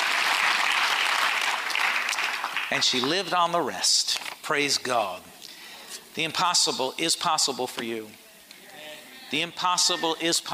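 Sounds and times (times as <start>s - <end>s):
audience clapping: 0.0s - 3.3s
speech: 2.7s - 5.3s, 6.2s - 8.2s, 9.3s - 10.5s.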